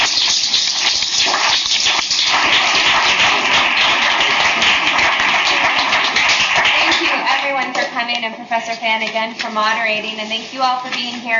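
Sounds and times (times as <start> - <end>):
audience applause for panelists: 0.0 - 7.4
speech: 8.5 - 11.3.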